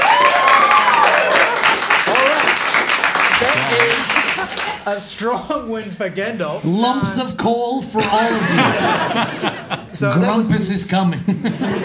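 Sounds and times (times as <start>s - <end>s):
audience applause: 0.0s - 5.0s
laughter: 3.2s - 5.0s, 7.9s - 10.4s, 11.1s - 11.8s
speech: 4.8s - 11.8s.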